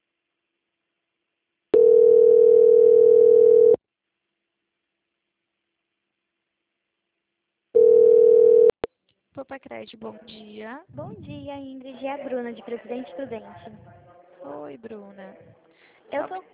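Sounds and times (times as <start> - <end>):
telephone call transfer tone: 1.8 - 3.8, 7.8 - 8.8
speech: 9.5 - 16.5.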